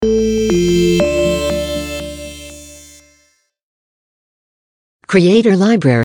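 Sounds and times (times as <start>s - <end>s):
audio logo jingle: 0.0s - 3.2s.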